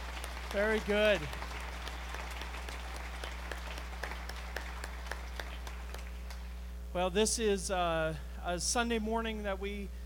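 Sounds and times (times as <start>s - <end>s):
audience applauding graduates: 0.0s - 6.5s
speech: 0.5s - 1.4s, 6.9s - 10.0s.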